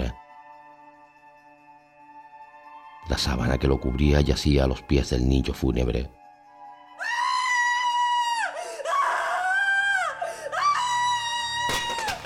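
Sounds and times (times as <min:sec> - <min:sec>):
speech: 0:03.1 - 0:06.2
anguished scream of alarm: 0:07.0 - 0:12.2.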